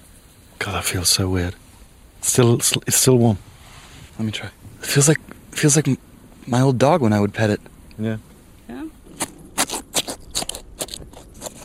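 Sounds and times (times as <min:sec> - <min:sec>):
speech: 0:00.6 - 0:01.6, 0:02.2 - 0:03.6, 0:04.2 - 0:08.3
cutting open a deer's rib cage: 0:09.0 - 0:11.6.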